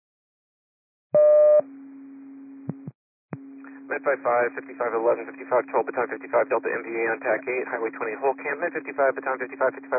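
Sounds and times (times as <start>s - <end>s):
radio dispatch cancellation tones: 3.7s - 9.9s
speech: 3.9s - 9.9s.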